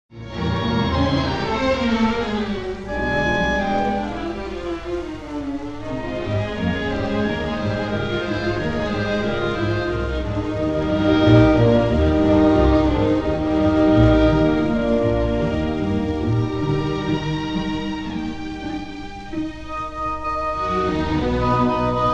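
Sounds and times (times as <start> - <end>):
orchestral symphony in C minor: 0.1 - 22.1.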